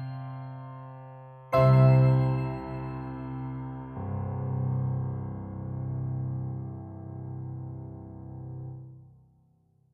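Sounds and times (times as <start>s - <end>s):
piano and bell melody: 0.0s - 6.3s.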